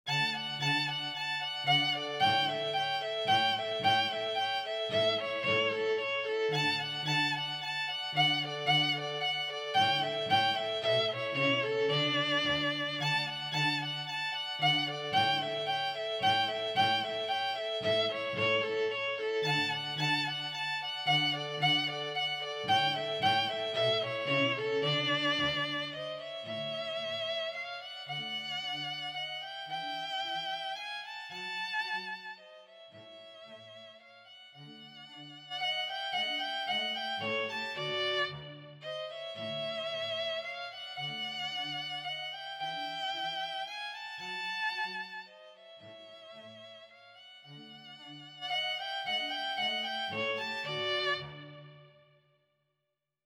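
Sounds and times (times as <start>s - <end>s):
dance in D for two violins and bass: 0.0s - 52.2s.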